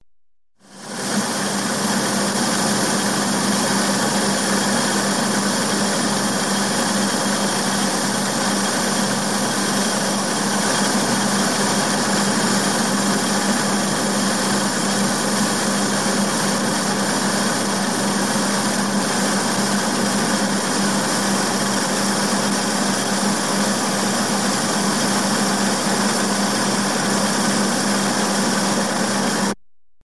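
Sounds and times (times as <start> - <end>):
cigarette production machine running at a tobacco factory: 0.8 - 29.6.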